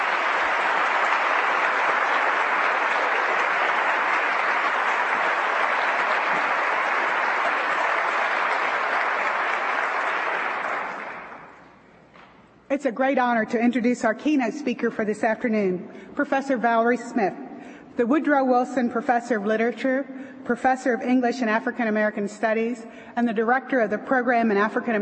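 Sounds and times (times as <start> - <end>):
audience applause: 0.0 - 11.6
speech: 12.8 - 17.4, 18.0 - 25.0.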